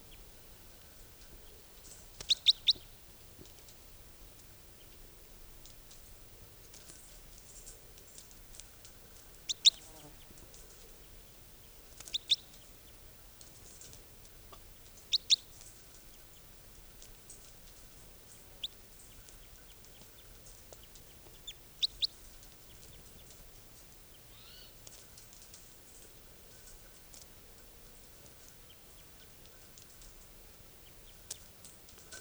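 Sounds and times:
faint hiss: 0.0 - 32.1
type 4 bird chirping: 1.4 - 3.0, 9.4 - 13.0, 15.0 - 16.5, 17.2 - 23.5, 24.1 - 24.8.

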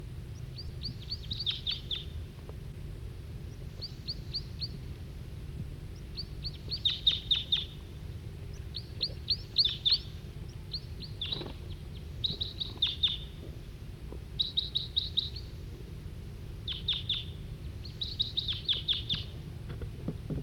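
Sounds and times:
low hum: 0.0 - 20.4
male wild bird singing: 0.3 - 2.2, 3.4 - 4.8, 5.9 - 13.5, 14.3 - 15.7, 16.6 - 19.4.

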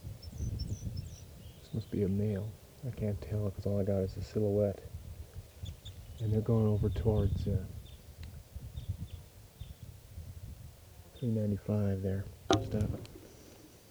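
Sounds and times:
crossbill calls: 0.2 - 4.8, 11.0 - 13.8
speech: 1.8 - 4.9, 6.2 - 7.8, 11.2 - 13.1.

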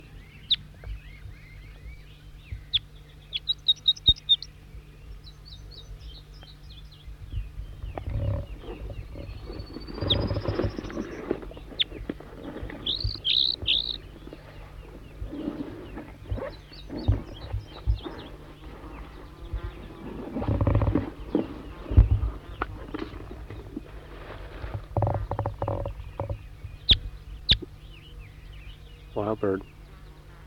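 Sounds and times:
low hum: 0.0 - 30.4
wild bird repeating song phrases: 0.0 - 30.4
rustling: 8.0 - 26.3.

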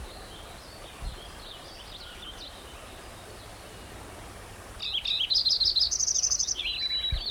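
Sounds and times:
white-crowned sparrow singing: 4.8 - 7.2.

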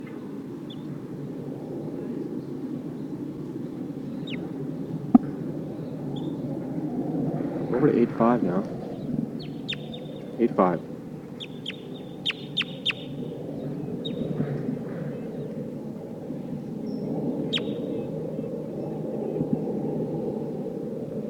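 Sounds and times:
steady low rumbling background: 0.0 - 21.2
speech: 7.8 - 8.8, 10.4 - 10.9
crossbill calls of the Sitkensis type: 7.8 - 13.3.

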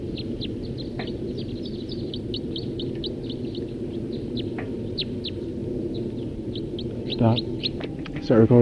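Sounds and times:
several birds singing: 0.0 - 8.6
speech: 7.2 - 7.5, 8.3 - 8.6.

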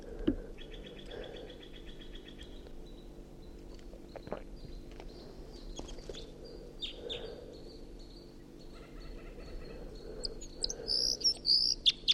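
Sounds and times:
steady low hum: 0.0 - 12.1
wild bird singing: 0.6 - 12.1.

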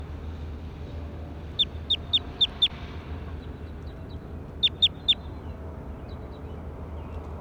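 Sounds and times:
recorded bird call, bird two: 1.6 - 2.7, 4.6 - 5.3.

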